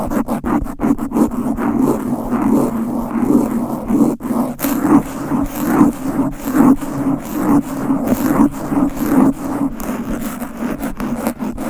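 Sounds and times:
fast aggressive scratching and rubbing against a microphone: 0:00.0 - 0:11.6
low steady droning hum: 0:04.6 - 0:10.9.

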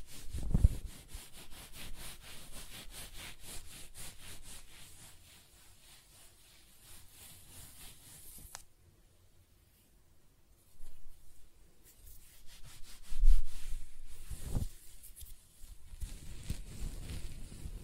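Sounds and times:
close-up hair scratching strokes: 0:00.0 - 0:08.7, 0:10.6 - 0:17.8
soft hair rubbing: 0:00.0 - 0:08.7, 0:09.5 - 0:17.8.

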